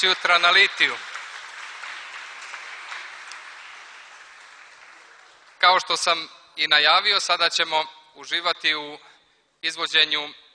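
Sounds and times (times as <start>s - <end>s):
speech: 0.0s - 1.1s, 5.6s - 10.4s
audience applause for a performing group: 0.0s - 5.6s.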